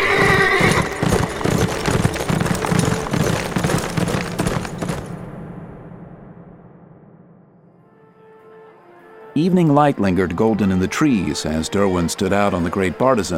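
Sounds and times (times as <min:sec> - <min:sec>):
horses setting off at a gallop: 0:00.0 - 0:05.2
speech: 0:09.4 - 0:13.3.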